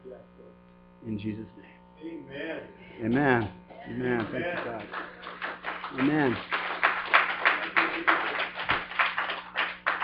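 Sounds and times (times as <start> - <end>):
speech: 0.1 - 5.1, 5.9 - 6.6
audience applause: 4.1 - 10.0.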